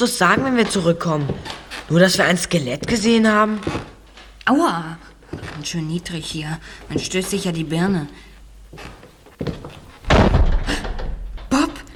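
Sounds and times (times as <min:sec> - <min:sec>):
speech: 0:00.0 - 0:03.9, 0:04.5 - 0:09.6
door slamming shut: 0:10.0 - 0:11.9.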